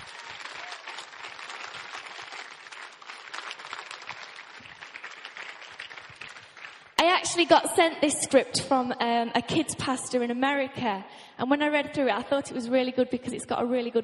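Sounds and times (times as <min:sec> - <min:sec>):
audience applause: 0:00.0 - 0:07.0
speech: 0:07.3 - 0:14.0.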